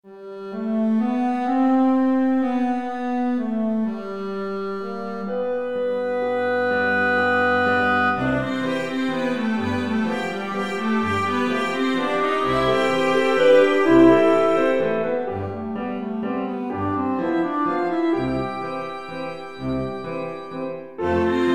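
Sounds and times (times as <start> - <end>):
waltz music: 0.1 - 21.5.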